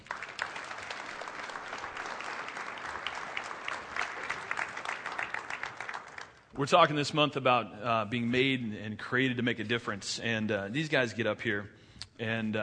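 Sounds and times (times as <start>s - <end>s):
audience applause for the band: 0.0s - 6.5s
speech: 6.6s - 12.6s.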